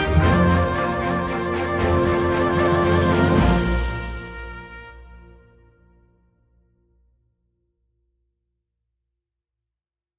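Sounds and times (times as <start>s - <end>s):
solo trumpet melody: 0.0s - 6.4s.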